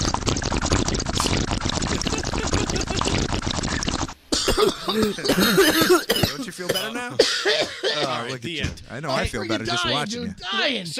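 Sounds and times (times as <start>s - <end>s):
water bubbling through a bong as a hit is drawn: 0.0s - 6.8s
laughter: 2.0s - 3.3s, 4.8s - 8.6s
speech: 4.9s - 10.9s.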